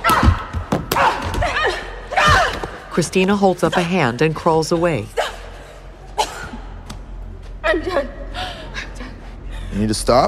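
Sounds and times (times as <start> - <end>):
punches and kicks landing in a fight in a ring: 0.0 - 2.8
speech: 3.0 - 5.2, 9.8 - 10.2.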